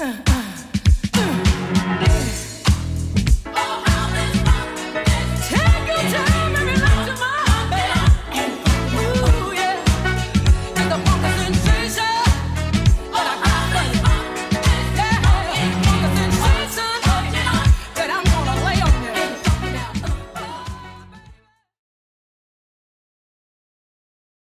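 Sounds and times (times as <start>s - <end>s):
80s drum loop: 0.0s - 20.8s.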